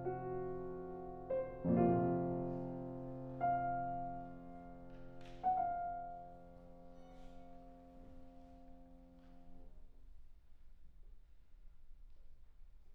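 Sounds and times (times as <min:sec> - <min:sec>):
solo piano Celtic lament: 0:00.0 - 0:09.6.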